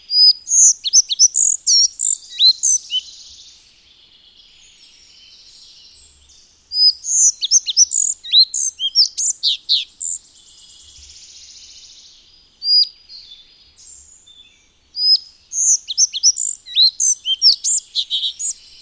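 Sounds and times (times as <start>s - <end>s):
Collared flycatcher song of high squeaky whistled notes: 0.2s - 3.0s, 6.8s - 10.2s, 15.1s - 18.6s.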